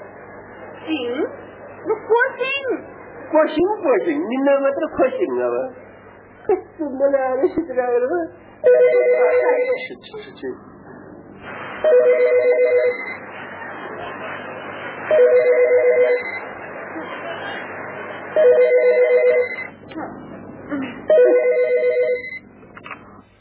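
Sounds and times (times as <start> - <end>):
speech: 0.8 - 5.8, 6.5 - 10.7, 11.8 - 13.1, 15.1 - 16.3
telephone ringtone: 8.6 - 9.8, 11.9 - 13.0, 15.1 - 16.2, 18.4 - 19.7, 21.1 - 22.4.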